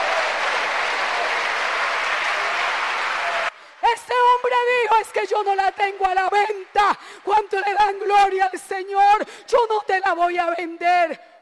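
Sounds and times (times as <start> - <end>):
applause: 0.0 - 7.9
speech: 4.4 - 11.3.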